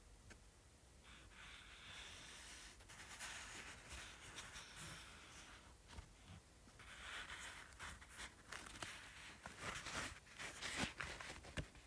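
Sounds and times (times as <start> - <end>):
scratching on a paperback book: 1.6 - 5.7, 6.8 - 11.4.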